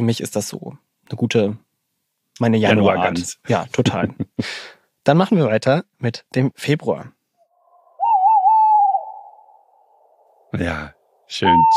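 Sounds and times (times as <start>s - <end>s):
speech: 0.0s - 1.6s, 2.4s - 7.2s, 10.5s - 11.7s
male tawny owl song: 7.5s - 10.5s, 11.3s - 11.7s.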